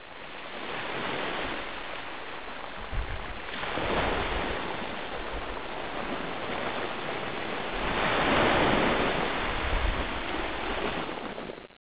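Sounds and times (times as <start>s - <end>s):
ocean: 0.0s - 11.7s.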